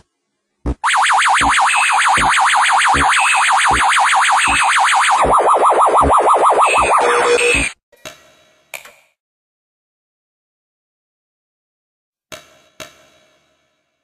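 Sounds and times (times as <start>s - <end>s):
1980s arcade game sound effect: 0.7s - 7.8s.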